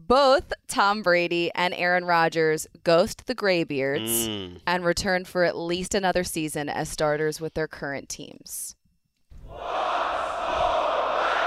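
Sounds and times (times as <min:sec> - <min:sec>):
speech: 0:00.1 - 0:08.8
large crowd cheering and roaring: 0:09.5 - 0:11.4.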